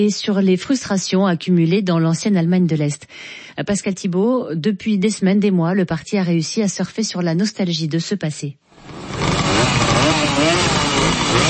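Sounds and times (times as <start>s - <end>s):
speech: 0.0s - 9.0s
old East German two-stroke mopeds and motorcycles Simson Schwalbe MZ running: 8.8s - 11.4s.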